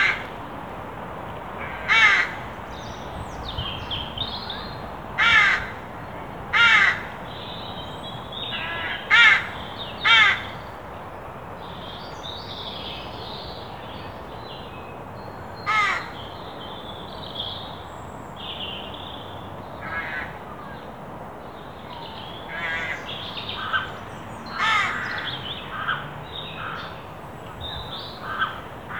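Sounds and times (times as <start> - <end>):
Carrion crow Corvus corone cawing: 0.0 - 0.3, 1.6 - 2.4, 5.2 - 5.8, 6.5 - 7.1, 8.5 - 10.5, 15.7 - 16.2, 19.8 - 20.4, 22.5 - 23.9, 24.5 - 26.0, 28.2 - 28.9.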